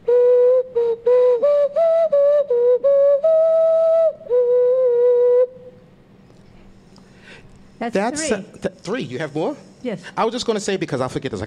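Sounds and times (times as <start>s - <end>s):
whistle-like flute tones: 0.0s - 6.0s
speech: 7.9s - 11.4s.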